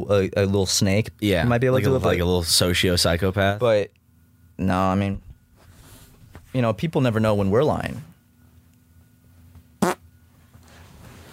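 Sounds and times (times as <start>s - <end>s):
speech: 0.1s - 4.0s, 4.6s - 5.2s, 6.5s - 8.1s
short loud raspy fart: 9.8s - 10.0s.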